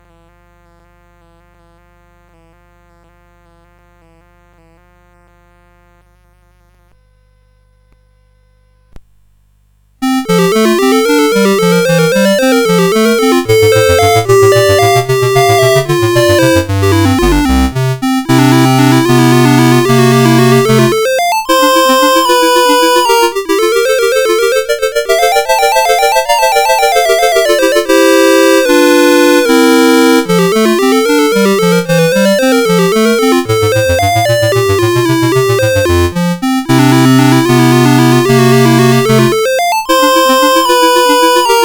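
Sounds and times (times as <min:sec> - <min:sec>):
CSG8580R5 sound chip music: 0:10.0 - 0:41.6.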